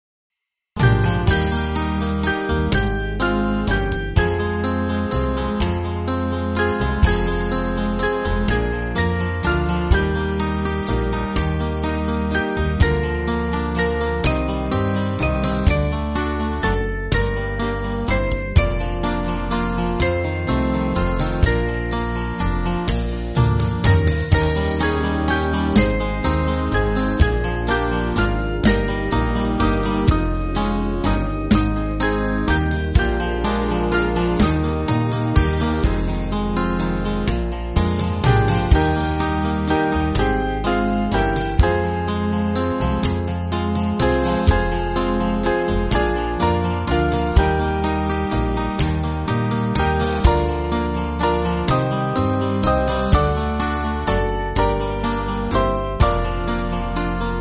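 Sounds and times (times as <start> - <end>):
backing music for churches: 0.8 - 57.3.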